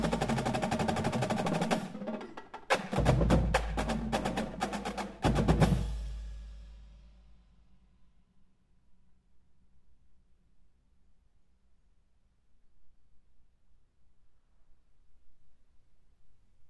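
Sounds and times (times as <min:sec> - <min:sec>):
drum corps street beat: 0:00.0 - 0:06.8.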